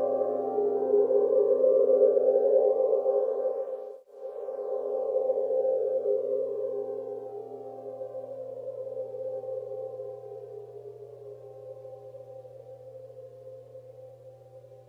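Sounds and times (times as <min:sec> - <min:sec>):
plasma field hum: 0:00.1 - 0:14.8.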